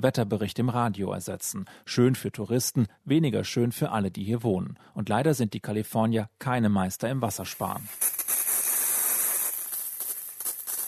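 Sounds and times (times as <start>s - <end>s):
speech: 0.0s - 8.2s
timed lawn sprinklers hissing in California: 7.5s - 10.8s.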